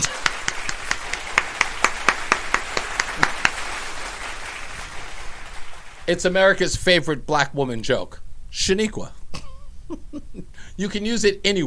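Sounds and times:
audience applause: 0.0 - 6.3
noise: 0.0 - 11.6
speech: 6.1 - 9.2, 9.9 - 11.6.

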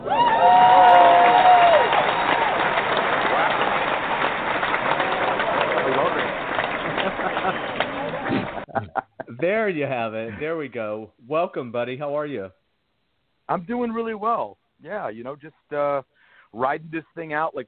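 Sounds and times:
applause: 0.0 - 8.7
laughter: 5.7 - 9.5
speech: 9.7 - 12.6, 13.5 - 17.6.

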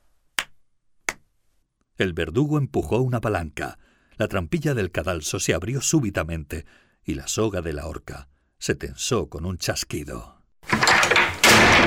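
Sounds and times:
hand claps: 0.4 - 1.3
speech: 2.0 - 10.8.

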